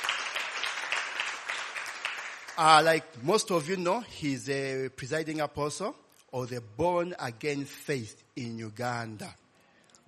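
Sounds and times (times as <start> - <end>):
church congregation applauding: 0.0 - 3.7
speech: 2.6 - 9.4.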